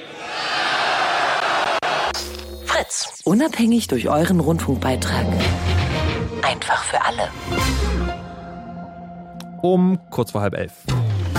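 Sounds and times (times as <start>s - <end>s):
crowd cheering: 0.0s - 2.5s
speech: 2.8s - 5.8s, 6.4s - 8.2s, 9.6s - 11.0s.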